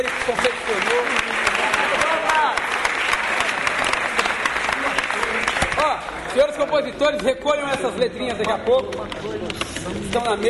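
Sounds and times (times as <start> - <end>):
audience applause: 0.0 - 6.8
speech: 6.4 - 10.4.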